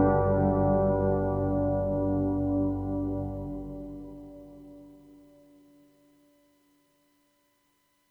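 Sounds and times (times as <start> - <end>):
slow dark music: 0.0 - 4.8.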